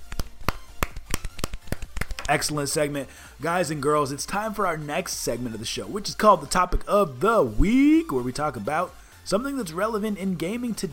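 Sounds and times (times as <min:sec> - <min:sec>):
golf clap: 0:00.1 - 0:02.4
speech: 0:02.3 - 0:10.9.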